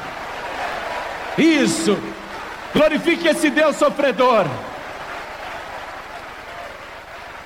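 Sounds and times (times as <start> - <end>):
audience applauding: 0.0 - 7.4
speech: 1.4 - 4.7.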